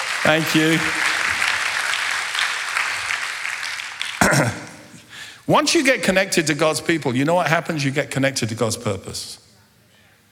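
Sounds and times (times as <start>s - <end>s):
audience applause: 0.0s - 5.0s
speech: 0.2s - 1.2s, 5.5s - 9.4s.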